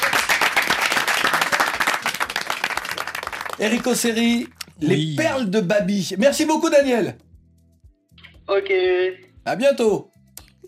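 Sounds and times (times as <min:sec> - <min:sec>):
applause: 0:00.0 - 0:04.6
speech: 0:03.6 - 0:07.2, 0:08.5 - 0:10.1.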